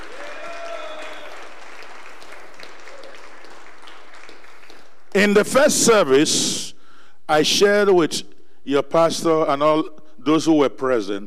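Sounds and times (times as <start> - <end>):
crowd clapping hands: 0.0 - 5.4
speech: 5.2 - 6.7, 7.3 - 11.2.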